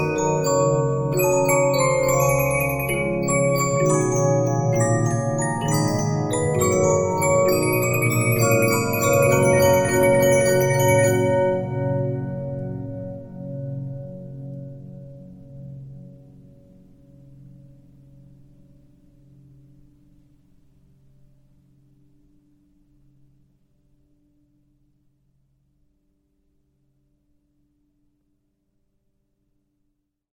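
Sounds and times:
Regina 15-inch disc music box: 0.0s - 12.8s.

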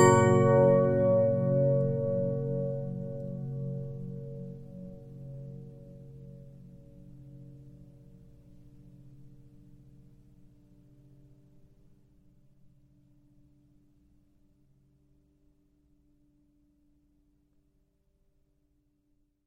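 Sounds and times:
Regina 15-inch music box playing: 0.0s - 3.2s.

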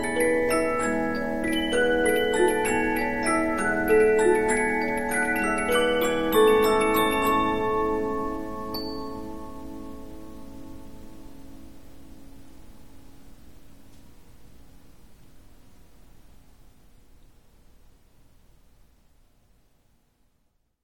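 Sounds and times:
Polyphon 15-inch disc music box playing: 0.0s - 10.0s.

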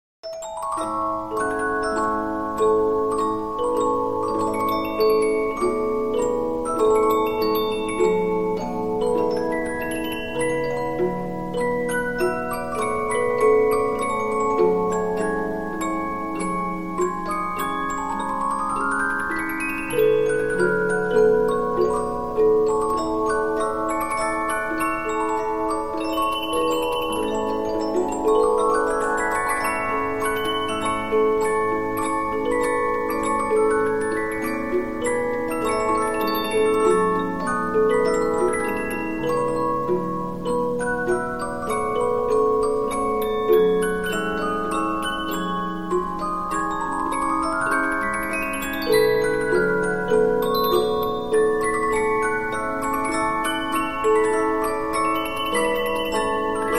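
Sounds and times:
Polyphon 15-inch disc music box playing: 0.3s - 56.7s.

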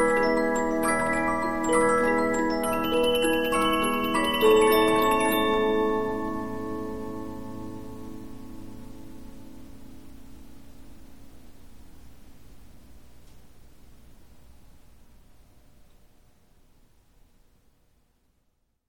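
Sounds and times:
Polyphon 15-inch disc music box playing: 0.0s - 8.0s.

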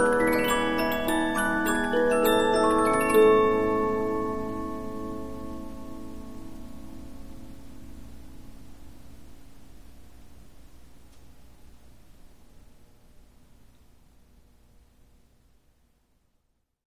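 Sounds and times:
Polyphon 15-inch disc music box playing: 0.0s - 6.2s.

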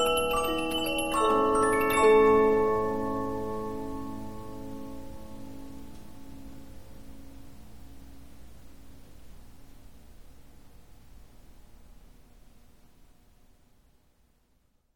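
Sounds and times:
Polyphon 15-inch disc music box playing: 0.0s - 5.1s.

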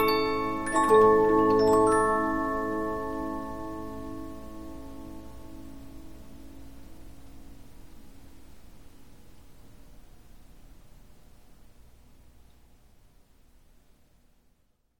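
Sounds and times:
Polyphon 15-inch disc music box playing: 0.0s - 5.1s.

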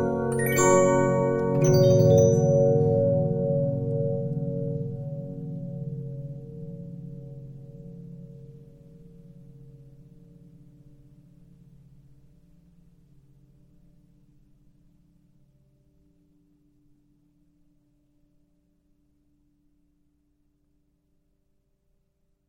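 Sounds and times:
Regina 15-inch disc music box: 0.0s - 5.6s.

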